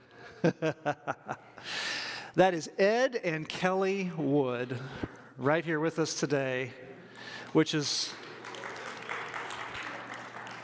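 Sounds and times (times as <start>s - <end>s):
laughter: 0.1s - 1.6s
speech: 0.4s - 1.8s, 2.4s - 8.2s
audience clapping: 7.2s - 10.6s.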